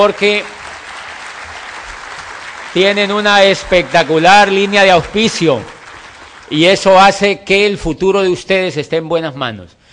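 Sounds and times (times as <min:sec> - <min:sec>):
speech: 0:00.0 - 0:00.6, 0:02.8 - 0:05.8, 0:06.5 - 0:09.8
audience applause: 0:00.0 - 0:07.0.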